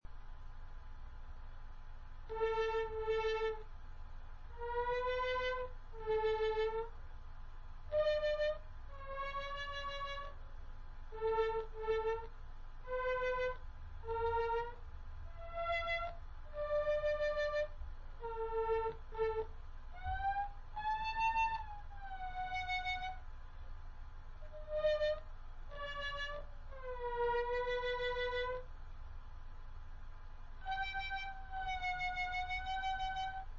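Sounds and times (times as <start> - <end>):
theremin: 2.3 - 3.7, 4.5 - 6.9, 7.9 - 10.4, 11.1 - 23.2, 24.4 - 28.7, 30.6 - 33.5.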